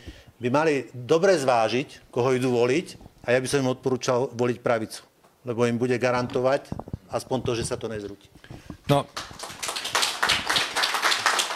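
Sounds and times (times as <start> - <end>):
speech: 0.4 - 9.3
audience applauding at a political debate evening: 9.1 - 11.5.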